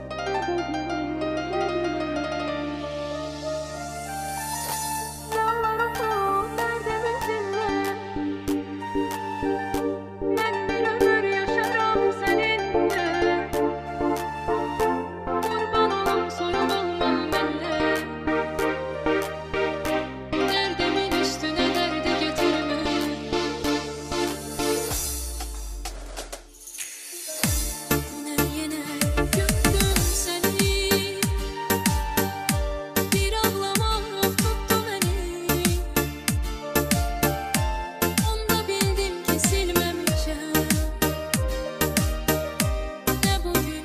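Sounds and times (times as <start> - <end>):
beautiful Turkish song: 0.2 - 25.9, 26.8 - 43.8.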